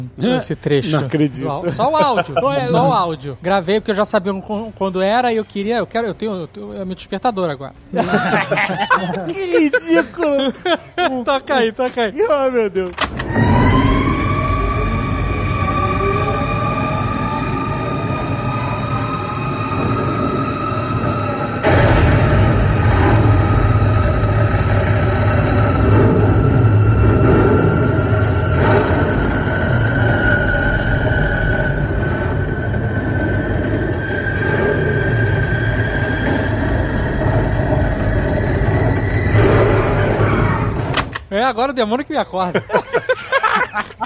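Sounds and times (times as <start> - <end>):
speech: 0.0 - 13.4, 41.5 - 42.8
laughter: 1.2 - 3.1, 7.9 - 11.9, 42.1 - 44.0
Batmobile engine roaring and revving from film audio: 13.1 - 41.2.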